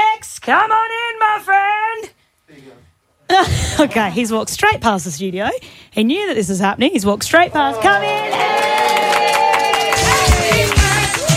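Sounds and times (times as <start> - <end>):
speech: 0.5 - 0.9, 3.4 - 8.6
clapping: 7.8 - 11.3.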